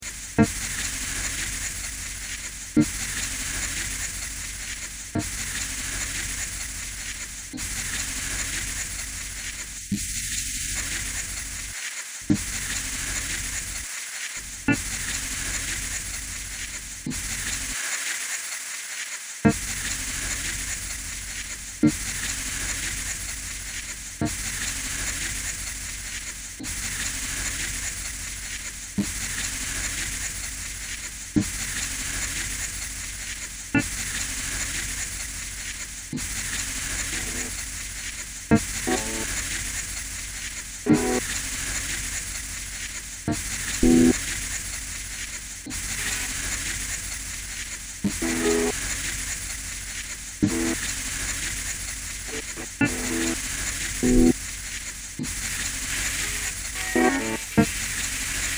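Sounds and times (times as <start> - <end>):
soft rain: 0.0 - 58.5.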